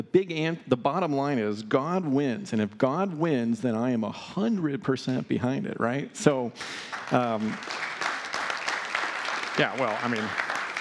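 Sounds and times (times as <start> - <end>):
speech: 0.0 - 7.9, 9.6 - 10.5
church congregation clapping: 6.6 - 10.8.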